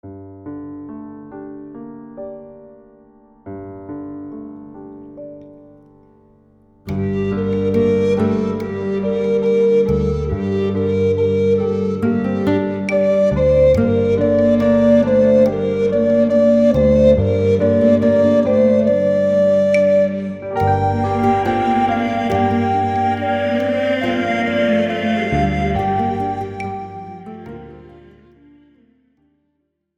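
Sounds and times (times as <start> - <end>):
meditation music: 6.9 - 29.2.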